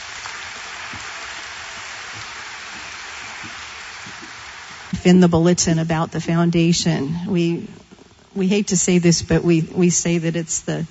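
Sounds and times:
crowd applause: 0:00.0 - 0:05.0
speech: 0:05.0 - 0:07.8, 0:08.4 - 0:10.9.

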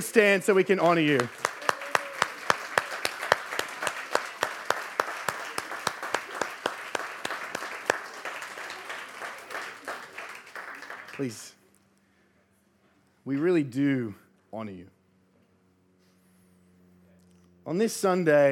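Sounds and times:
speech: 0:00.0 - 0:01.5, 0:11.2 - 0:11.5, 0:13.3 - 0:15.0, 0:17.7 - 0:18.4
audience clapping: 0:00.0 - 0:11.6.

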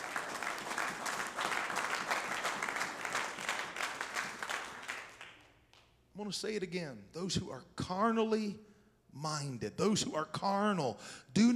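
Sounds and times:
audience clapping hands: 0:00.0 - 0:06.0
speech: 0:06.2 - 0:11.5.

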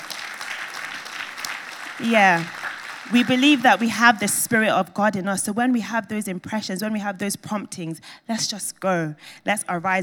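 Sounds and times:
audience clapping: 0:00.0 - 0:04.4
speech: 0:02.0 - 0:10.0.

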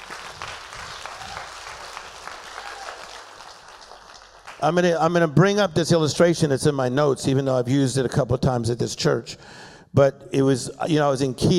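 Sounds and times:
audience clapping hands: 0:00.0 - 0:05.2
speech: 0:04.6 - 0:11.5.

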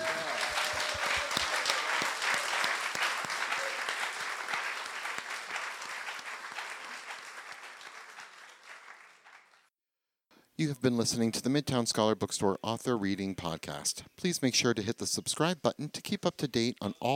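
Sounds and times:
audience applause: 0:00.0 - 0:09.7
speech: 0:10.6 - 0:17.1.

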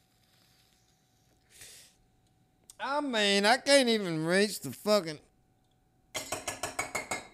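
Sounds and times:
speech: 0:02.8 - 0:05.3
pipe bowl rapped against a glass ashtray: 0:06.2 - 0:07.3.

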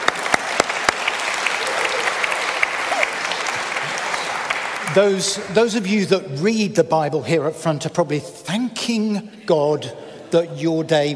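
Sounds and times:
applause: 0:00.0 - 0:05.6
speech: 0:05.0 - 0:11.1.

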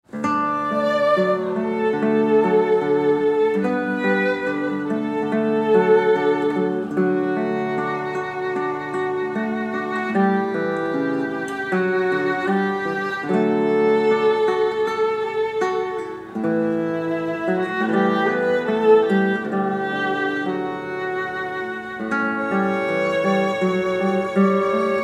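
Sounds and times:
violin playing a guitar arrangement: 0:00.0 - 0:25.0.

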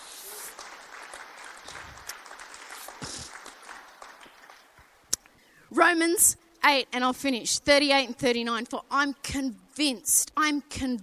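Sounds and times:
audience applause: 0:00.0 - 0:05.0
speech: 0:05.8 - 0:11.0.

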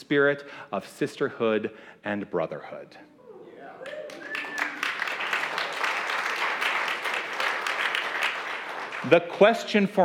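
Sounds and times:
speech: 0:00.1 - 0:03.1, 0:09.0 - 0:10.0
audience applause: 0:03.8 - 0:09.3.

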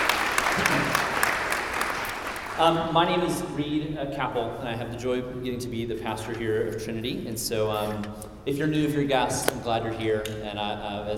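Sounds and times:
audience applauding: 0:00.0 - 0:02.8
speech: 0:02.6 - 0:11.1.

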